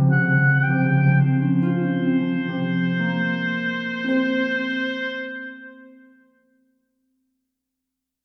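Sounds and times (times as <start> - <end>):
harp: 0.0 - 6.3
oboe: 0.0 - 6.3.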